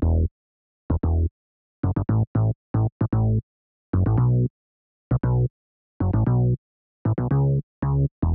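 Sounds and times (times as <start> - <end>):
bass line in A minor: 0.0 - 0.3, 0.9 - 3.4, 4.0 - 4.5, 5.1 - 8.3.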